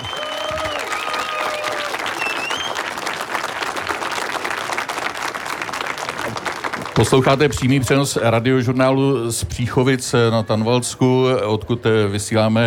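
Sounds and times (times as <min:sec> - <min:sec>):
audience applause: 0:00.0 - 0:08.0
speech: 0:07.0 - 0:12.6.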